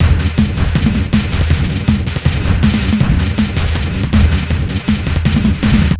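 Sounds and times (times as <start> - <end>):
master beats loop: 0.0 - 5.9.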